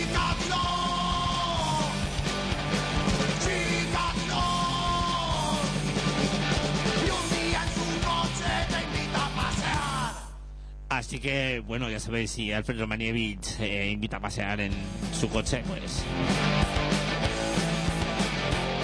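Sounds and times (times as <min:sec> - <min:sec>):
rock song playing in the background: 0:00.0 - 0:10.4, 0:14.7 - 0:18.8
speech: 0:11.2 - 0:16.7.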